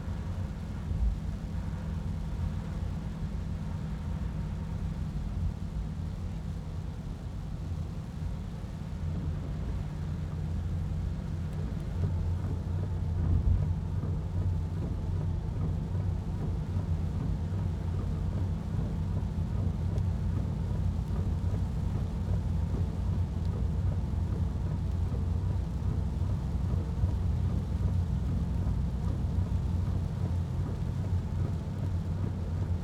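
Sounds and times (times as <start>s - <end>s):
van interior driving in rain: 0.0s - 32.8s.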